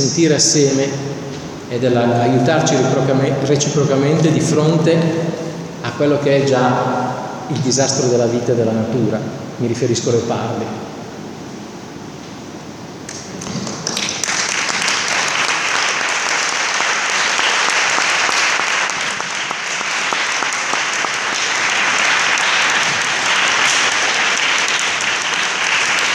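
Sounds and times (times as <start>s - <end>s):
speech: 0.0s - 10.9s
audience applause: 13.1s - 26.1s.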